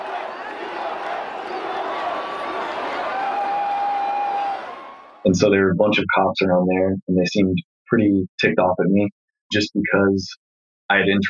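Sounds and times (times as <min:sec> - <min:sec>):
stadium crowd cheering wildly: 0:00.0 - 0:05.4
speech: 0:05.2 - 0:11.2.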